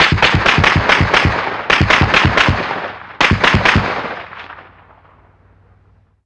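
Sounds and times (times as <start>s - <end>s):
.50 caliber gun: 0.0s - 4.8s.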